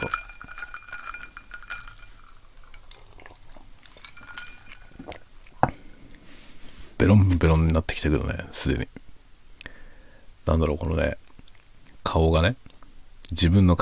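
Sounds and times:
ice cubes clinking against a glass: 0:00.0 - 0:05.8
faint hiss: 0:00.0 - 0:13.8
speech: 0:07.0 - 0:09.0, 0:10.5 - 0:11.2, 0:12.1 - 0:12.7, 0:13.3 - 0:13.8.

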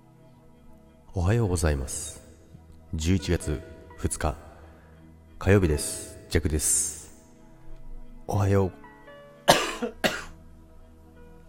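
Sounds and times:
speech: 0:01.2 - 0:02.2, 0:02.9 - 0:04.4, 0:05.4 - 0:07.0, 0:08.3 - 0:08.8, 0:09.8 - 0:10.1
person coughing while choking: 0:09.5 - 0:10.4.

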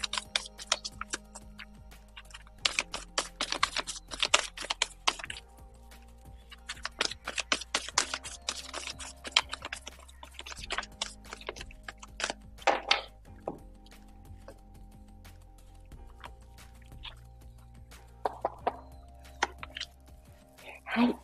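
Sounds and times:
deck of advice cards shuffled and drawn by hand: 0:00.0 - 0:13.2, 0:17.9 - 0:20.0.

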